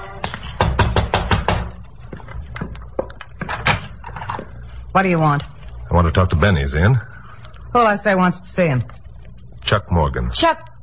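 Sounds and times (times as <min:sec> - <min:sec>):
knocking on a back door: 0:00.6 - 0:01.8
speech: 0:05.0 - 0:07.1, 0:07.7 - 0:09.0, 0:09.6 - 0:10.7.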